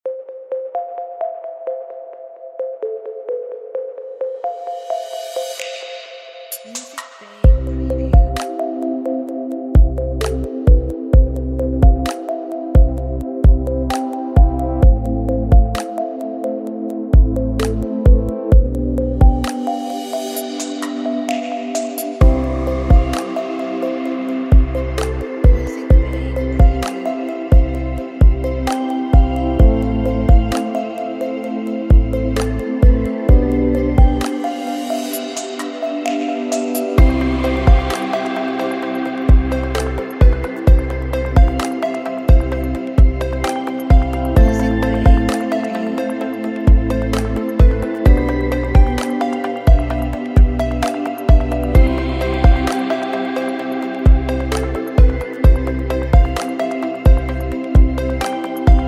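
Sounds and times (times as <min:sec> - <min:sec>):
ambient electronic music: 0:00.0 - 0:58.8.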